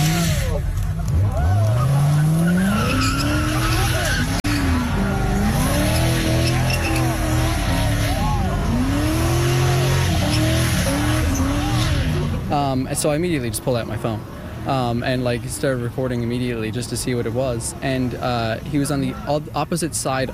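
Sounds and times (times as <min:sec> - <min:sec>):
car tires screeching during a burnout: 0:00.0 - 0:15.0
speech: 0:13.0 - 0:20.3.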